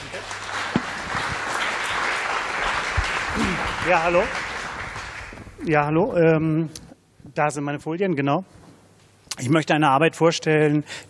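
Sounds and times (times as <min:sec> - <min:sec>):
audience applause: 0:00.0 - 0:05.6
speech: 0:03.4 - 0:04.4, 0:05.6 - 0:06.8, 0:07.4 - 0:08.6, 0:09.4 - 0:11.0.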